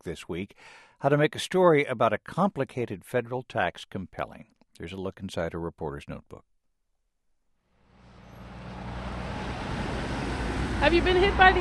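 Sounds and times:
speech: 0.0s - 6.5s, 10.8s - 11.5s
steady roadway traffic at a snowy corner of 7th and Pennsylvania Avenue, Washington: 7.7s - 11.5s.

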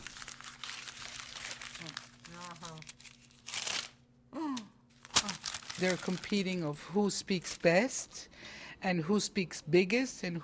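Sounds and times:
paper pages ripped off notepads in a mime act: 0.0s - 4.0s, 5.0s - 6.6s
speech: 5.8s - 10.4s.

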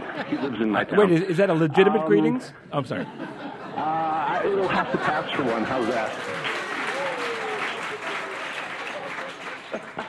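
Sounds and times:
laughter: 0.0s - 0.9s, 2.9s - 6.4s
speech: 0.2s - 6.4s
audience applause: 5.0s - 10.0s.

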